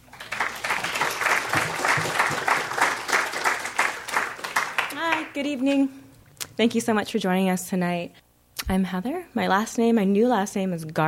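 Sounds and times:
audience applause welcoming a speaker to the stage: 0.0s - 5.8s
speech: 5.4s - 6.0s, 6.6s - 11.0s.

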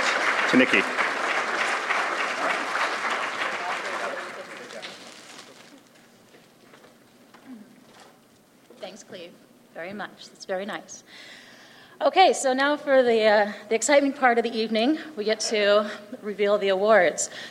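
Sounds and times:
audience applause: 0.0s - 5.9s
speech: 0.5s - 1.0s, 9.9s - 11.4s, 12.0s - 17.4s.

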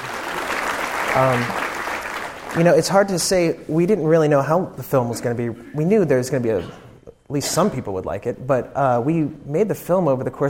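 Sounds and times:
audience applause at a film screening: 0.0s - 2.8s
speech: 1.2s - 1.6s, 2.5s - 10.4s.

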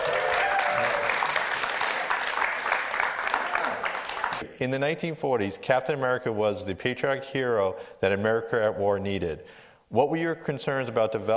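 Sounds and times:
audience applause welcoming screenwriters at UCSB Pollock Theater: 0.0s - 4.4s
speech: 4.4s - 11.3s.

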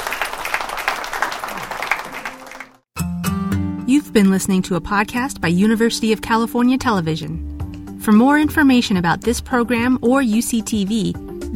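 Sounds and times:
audience applause: 0.0s - 2.9s
speech: 4.1s - 11.5s.

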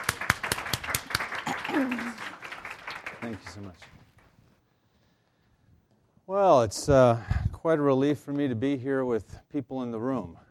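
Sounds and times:
audience applause greeting a guest: 0.0s - 4.3s
speech: 1.8s - 2.2s, 3.3s - 4.0s, 6.3s - 10.4s.

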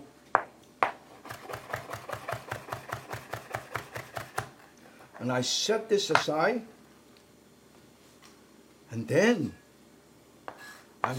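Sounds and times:
knife slicing food in half: 1.2s - 4.6s
speech: 5.2s - 6.8s, 9.0s - 9.6s.

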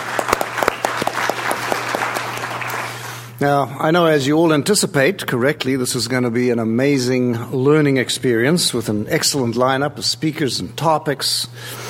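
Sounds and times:
audience applause: 0.0s - 3.3s
speech: 3.4s - 11.8s.

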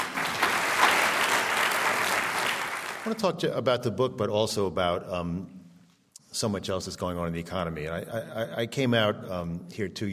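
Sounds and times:
audience applause welcoming author Roger Lowenstein: 0.0s - 3.2s
speech: 3.0s - 5.6s, 6.3s - 10.1s.

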